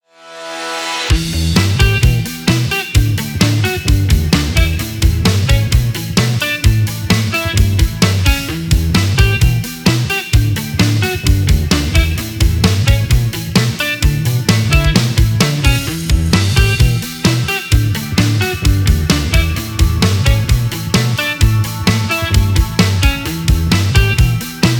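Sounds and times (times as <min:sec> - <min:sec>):
energetic indie pop music: 0:00.6 - 0:24.7.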